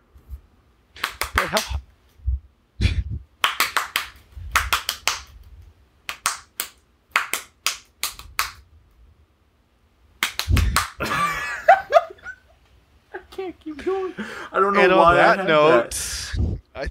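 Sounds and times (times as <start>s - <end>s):
hands clapping a theme song rhythm: 1.0s - 1.8s, 3.4s - 8.7s, 10.2s - 11.3s
speech: 1.4s - 1.8s, 14.0s - 16.0s
laughter: 11.0s - 12.5s.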